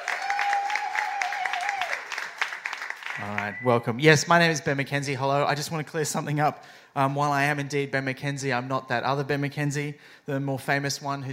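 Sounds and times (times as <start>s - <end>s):
audience whooping cheer: 0.0s - 2.4s
audience applause welcoming a comedian to the stage: 0.0s - 3.6s
speech: 3.2s - 11.3s.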